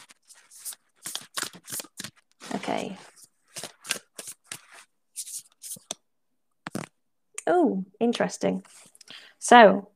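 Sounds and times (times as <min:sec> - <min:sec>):
deck of tarot cards being shuffled: 0:00.0 - 0:06.0, 0:06.7 - 0:06.9
speech: 0:02.6 - 0:03.1, 0:07.5 - 0:08.7, 0:09.5 - 0:09.9.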